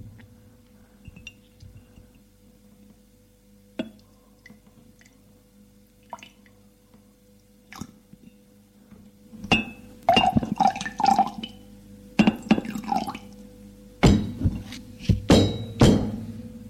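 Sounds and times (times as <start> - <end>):
glass clinking: 1.0 - 1.6, 9.4 - 13.2, 15.3 - 16.2
drink poured from a bottle into a glass: 10.1 - 11.6.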